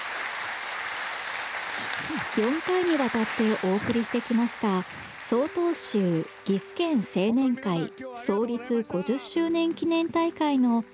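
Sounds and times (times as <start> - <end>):
audience applauding young Soto Zen monks at a Gifu prefecture youth association gathering: 0.0 - 6.5
speech: 2.0 - 10.9.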